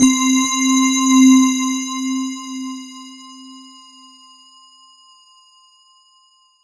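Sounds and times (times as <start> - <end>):
synth line in C3: 0.0 - 3.8.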